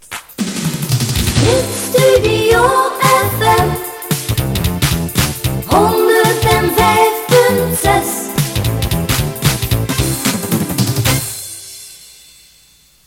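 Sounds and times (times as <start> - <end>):
sung jingle: 1.4 - 13.0.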